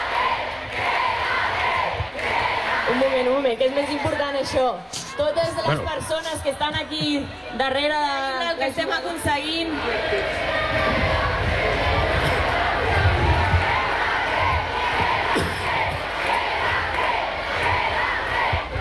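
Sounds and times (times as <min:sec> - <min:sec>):
stadium crowd applauding and cheering: 0:00.0 - 0:03.9, 0:09.8 - 0:18.8
speech: 0:03.2 - 0:11.1.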